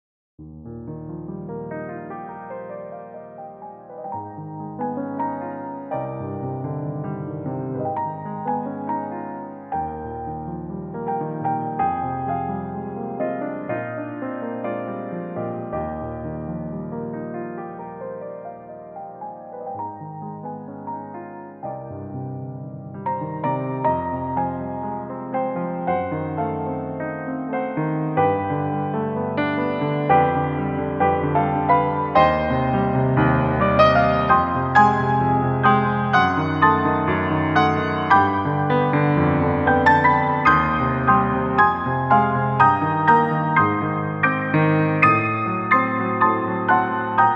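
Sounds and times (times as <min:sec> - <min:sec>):
prelude in E-flat major: 0:00.5 - 0:47.3.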